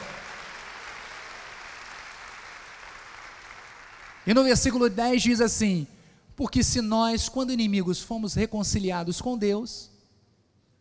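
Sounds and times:
audience applause: 0:00.0 - 0:04.3
speech: 0:04.2 - 0:09.9.

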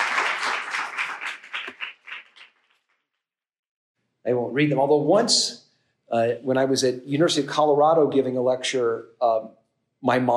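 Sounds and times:
audience applause: 0:00.0 - 0:02.6
speech: 0:04.2 - 0:10.3.

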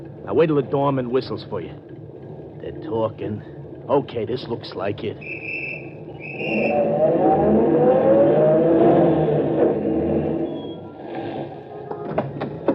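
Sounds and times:
speech: 0:00.0 - 0:02.0, 0:02.6 - 0:05.7, 0:06.3 - 0:08.4
taxi car engine rumbling: 0:00.0 - 0:12.7
sharp clicks and knocks of taxi stopping: 0:11.9 - 0:12.7.

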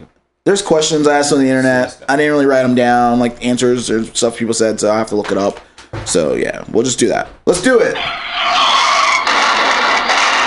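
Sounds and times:
speech: 0:00.5 - 0:08.8
car crash sound effect tire skid screech: 0:08.0 - 0:10.4.

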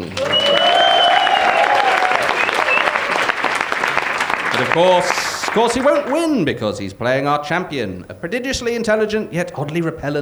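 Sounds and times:
audience applause: 0:00.0 - 0:06.7
laughter: 0:00.0 - 0:10.2
speech: 0:04.7 - 0:10.2.

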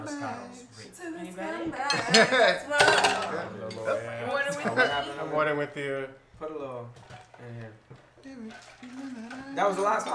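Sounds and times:
speech: 0:00.0 - 0:10.1
glasses clinking during a toast: 0:01.9 - 0:04.0, 0:08.5 - 0:10.1.

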